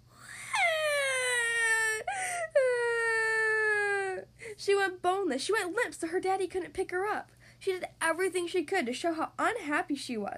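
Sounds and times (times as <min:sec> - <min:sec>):
storyteller imitating a child bawling: 0:00.5 - 0:04.2
speech: 0:04.6 - 0:10.3.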